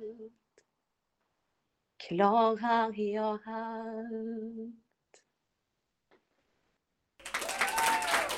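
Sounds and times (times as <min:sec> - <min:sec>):
speech: 0:02.1 - 0:04.9
applause: 0:07.2 - 0:08.3.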